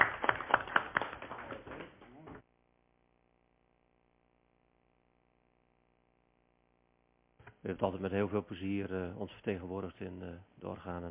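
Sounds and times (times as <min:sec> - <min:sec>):
group applauding: 0:00.0 - 0:02.4
speech: 0:07.6 - 0:11.0.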